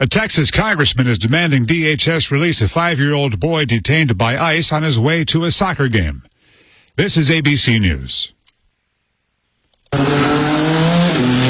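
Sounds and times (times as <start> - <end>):
speech: 0.0 - 6.3, 7.0 - 8.4, 9.9 - 11.4
race car engines roaring: 9.9 - 11.4
tires squealing: 10.0 - 11.4.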